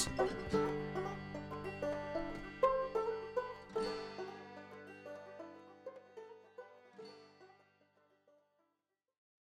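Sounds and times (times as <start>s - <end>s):
old time music: 0.0s - 6.9s.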